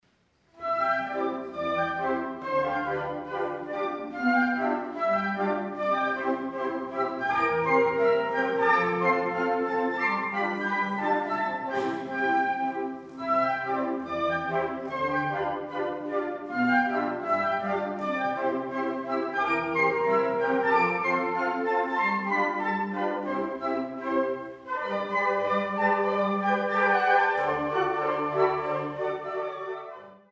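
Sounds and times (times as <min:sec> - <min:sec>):
polka music: 0:00.5 - 0:30.3.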